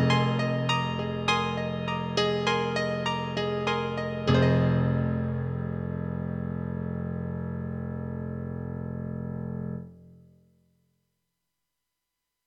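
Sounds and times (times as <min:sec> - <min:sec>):
rack synthesizer piano sound: 0:00.0 - 0:09.8.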